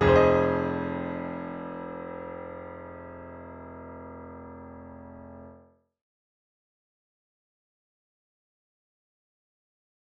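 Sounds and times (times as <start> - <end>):
grand piano: 0.0 - 5.8.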